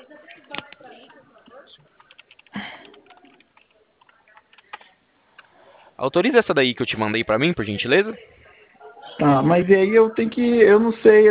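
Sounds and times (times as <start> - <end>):
keyboard typing of a WhatsApp message: 0.3 - 5.5
speech: 6.0 - 8.4, 9.2 - 11.2.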